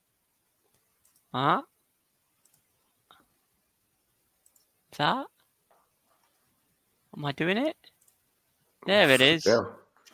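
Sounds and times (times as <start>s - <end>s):
computer mouse clicks while sharing a screen: 0.7s - 1.3s, 2.4s - 3.2s, 4.4s - 4.7s, 7.9s - 8.2s
speech: 1.3s - 1.7s, 5.0s - 5.3s, 7.2s - 7.9s, 8.8s - 9.8s.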